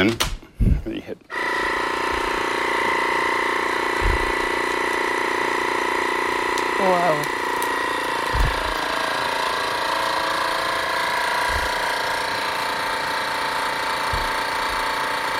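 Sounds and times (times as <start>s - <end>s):
vacuum sealer pump whirring: 1.3s - 15.3s
soft low thumps: 4.0s - 4.4s, 8.3s - 8.8s, 11.5s - 11.8s, 14.1s - 14.4s.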